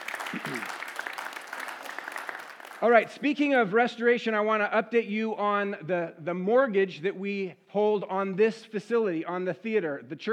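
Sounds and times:
audience applause: 0.0s - 3.1s
speech: 0.3s - 0.8s, 2.8s - 10.3s.

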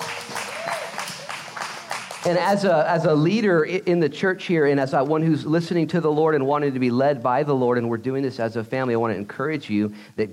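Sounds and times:
crowd clapping: 0.0s - 2.6s
speech: 2.2s - 10.3s.

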